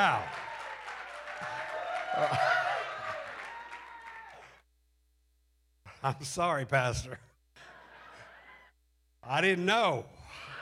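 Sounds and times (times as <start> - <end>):
speech: 0.0 - 0.4, 6.0 - 7.3, 9.2 - 10.5
audience applause: 0.0 - 4.6.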